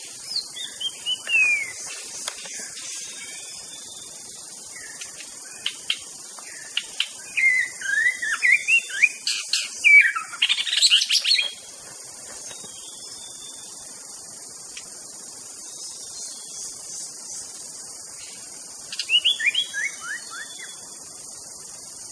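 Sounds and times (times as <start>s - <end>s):
wild white-rumped shama singing in forest: 0.3s - 1.8s, 7.3s - 11.5s, 19.0s - 20.8s.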